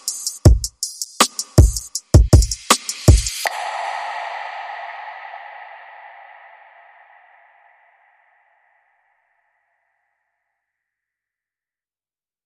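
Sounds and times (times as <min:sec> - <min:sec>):
low beat: 0:00.0 - 0:07.6.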